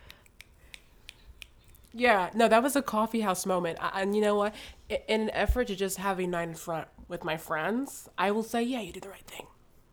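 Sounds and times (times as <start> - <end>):
fingers snapping: 0.0 - 1.9
speech: 2.0 - 9.5.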